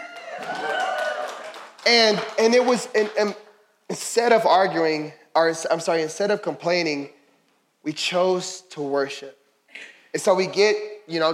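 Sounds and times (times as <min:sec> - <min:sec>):
audience cheering and clapping: 0:00.0 - 0:03.3
speech: 0:01.9 - 0:07.2, 0:07.8 - 0:11.3.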